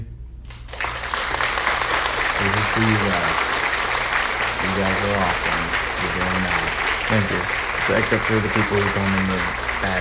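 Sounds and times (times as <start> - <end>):
round of applause: 0.6 - 9.9
laughter: 1.5 - 9.9
speech: 2.8 - 3.5, 4.6 - 9.9.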